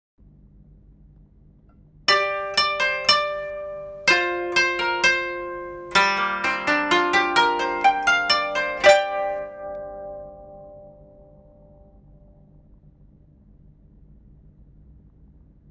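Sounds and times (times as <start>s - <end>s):
koto: 2.1s - 11.8s.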